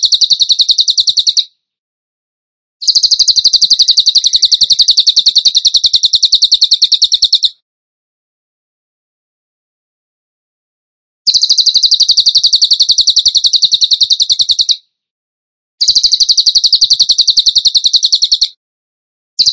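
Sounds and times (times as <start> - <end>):
bird song trill of high even notes: 0.0 - 1.5, 2.8 - 7.6, 11.3 - 14.8, 15.8 - 18.6.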